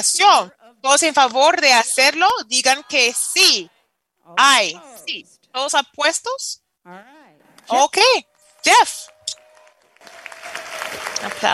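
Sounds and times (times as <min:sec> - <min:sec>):
speech: 0:00.0 - 0:09.1, 0:11.2 - 0:11.5
audience applause: 0:09.0 - 0:11.5.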